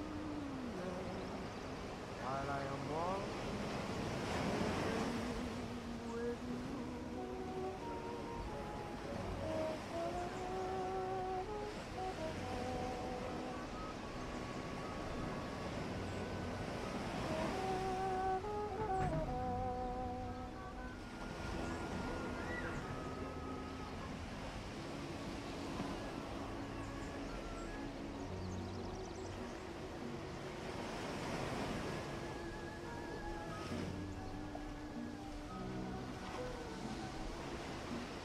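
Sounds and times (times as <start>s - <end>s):
ocean waves rushing: 0.0s - 38.2s
seagulls calling: 0.0s - 38.2s.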